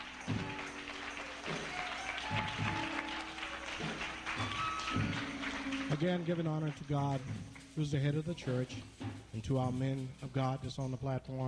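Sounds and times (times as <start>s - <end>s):
audience applause: 0.0s - 7.6s
speech: 6.0s - 11.4s.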